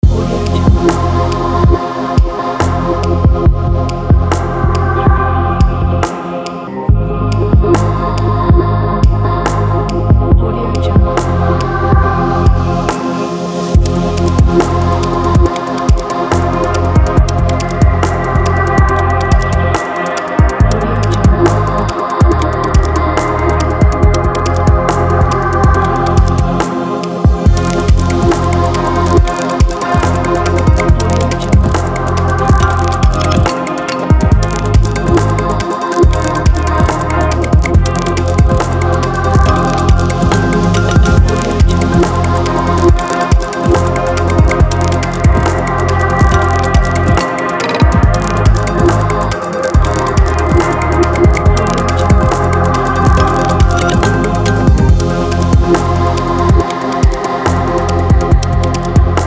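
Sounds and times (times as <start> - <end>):
deep abstract downtempo music: 0.0 - 59.2.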